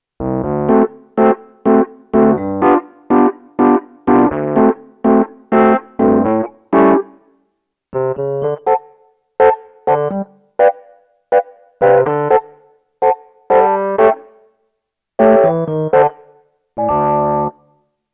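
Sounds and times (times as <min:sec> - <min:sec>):
Dexibell Vivo SX7 suitcase electric piano: 0:00.3 - 0:07.2, 0:08.0 - 0:14.3, 0:15.2 - 0:17.6.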